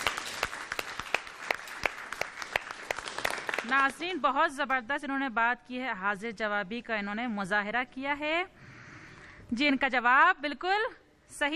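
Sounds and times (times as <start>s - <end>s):
audience applause: 0.0s - 3.9s
speech: 3.7s - 8.6s, 9.5s - 11.5s.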